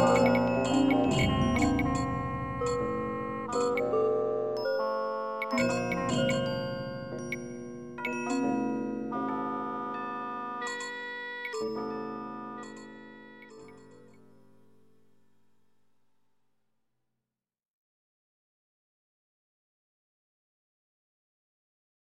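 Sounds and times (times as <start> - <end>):
heavenly chimes playing a scale: 0.0 - 14.4.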